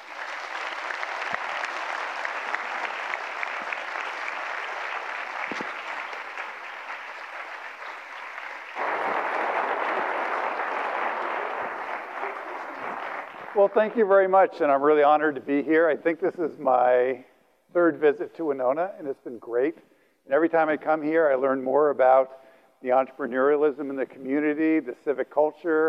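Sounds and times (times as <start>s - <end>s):
audience at a Winona State event clapping: 0.0s - 14.9s
speech: 13.6s - 25.8s.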